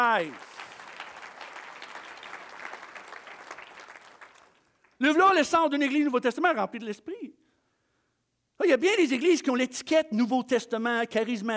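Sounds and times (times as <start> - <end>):
speech: 0.0 - 0.5, 5.0 - 7.4, 8.6 - 11.5
audience applause: 0.0 - 5.0.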